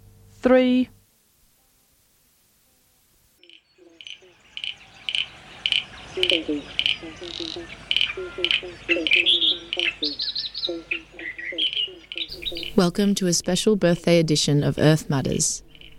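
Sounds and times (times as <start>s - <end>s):
speech: 0.4s - 1.0s, 7.5s - 11.0s, 12.8s - 15.7s
frogs calling: 3.4s - 13.1s, 15.3s - 15.9s.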